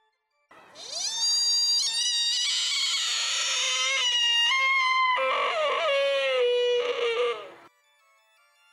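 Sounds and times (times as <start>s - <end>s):
buck deer's mating season cry: 0.8s - 7.7s.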